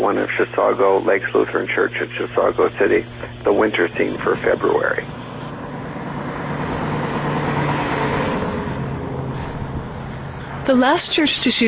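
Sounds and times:
speech: 0.0 - 5.2, 10.7 - 11.6
cars driving past on a road: 4.4 - 11.6.

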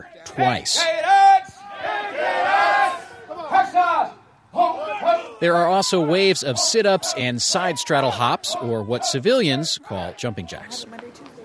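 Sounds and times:
speech: 0.0 - 1.2, 5.4 - 11.1
recruits shouting in unison: 0.8 - 9.7.

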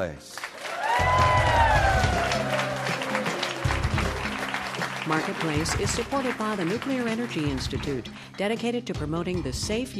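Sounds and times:
speech: 0.0 - 0.4, 5.1 - 9.9
lively bar crowd applauding and cheering: 0.2 - 8.5
musical theme: 0.6 - 9.5.

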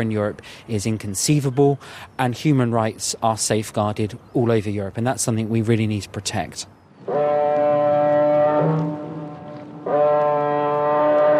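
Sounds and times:
speech: 0.0 - 7.4
wind: 0.0 - 11.3
water noise: 6.9 - 11.3
car ferry foghorn in the fog: 7.0 - 11.3.

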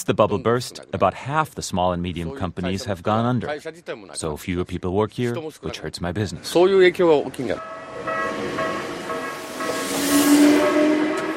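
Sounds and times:
speech: 0.0 - 8.6
commuter train passing: 7.4 - 11.3.

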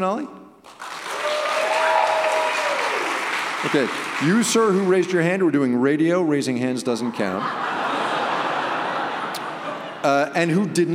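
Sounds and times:
speech: 0.0 - 0.8, 3.6 - 7.6, 10.0 - 10.9
audience applause: 0.7 - 5.3
faint cheers and whistles: 1.1 - 3.2
laughter: 7.0 - 10.9.

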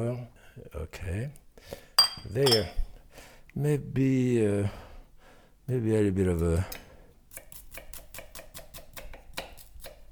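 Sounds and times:
speech: 0.0 - 2.8, 3.6 - 4.8, 5.7 - 6.8
dull kitchen knife chopping food on a board: 7.4 - 10.0.

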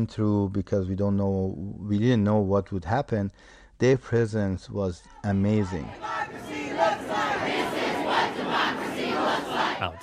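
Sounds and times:
speech: 0.0 - 6.4, 9.4 - 10.0
around a thousand protesters shouting and chanting outside an airport: 5.0 - 10.0.

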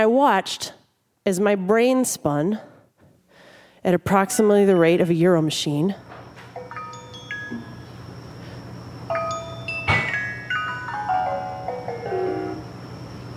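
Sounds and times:
speech: 0.0 - 2.7, 3.8 - 6.1
vibraphone-like chiming feedback tone: 6.6 - 8.0, 9.1 - 12.8.

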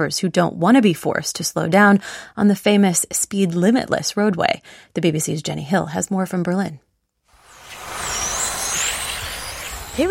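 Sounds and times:
speech: 0.0 - 6.9, 10.0 - 10.1
tiny electric toy cars racing around a mini racetrack in south Berlin: 7.4 - 10.1.

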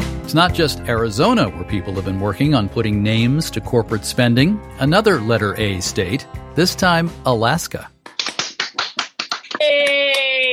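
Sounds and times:
speech: 0.3 - 7.9
small group hand claps over a video call: 8.0 - 10.5.

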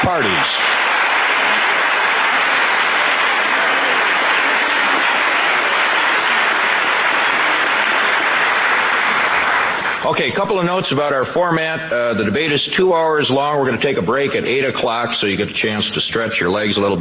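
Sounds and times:
audience applause: 0.0 - 10.6
speech: 0.1 - 0.6, 10.2 - 16.9.

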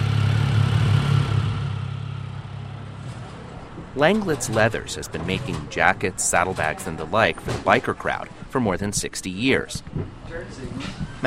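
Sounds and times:
street traffic engine rumble on a commercial strip: 0.0 - 11.2
speech: 4.0 - 11.2.

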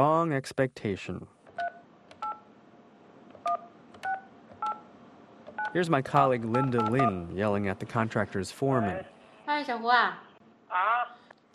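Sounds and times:
speech: 0.0 - 1.4, 5.7 - 11.5
touch-tone beeps of a phone number being dialed: 6.5 - 7.2.

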